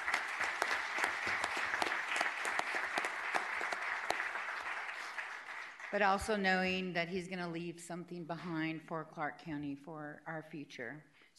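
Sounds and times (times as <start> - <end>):
audience round of applause: 0.0 - 6.3
speech: 5.9 - 11.3.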